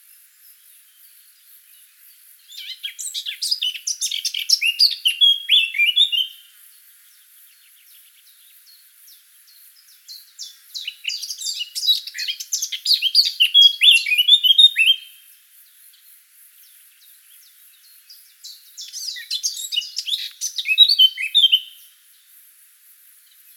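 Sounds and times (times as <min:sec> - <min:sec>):
Eurasian blackcap singing a chattering warble: 0:02.5 - 0:06.4, 0:10.0 - 0:15.1, 0:18.4 - 0:21.8.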